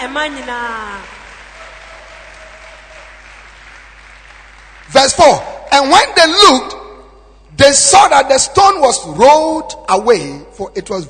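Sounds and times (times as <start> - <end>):
speech: 0.0 - 1.2, 4.9 - 6.8, 7.6 - 11.0
audience clapping hands: 0.0 - 6.0.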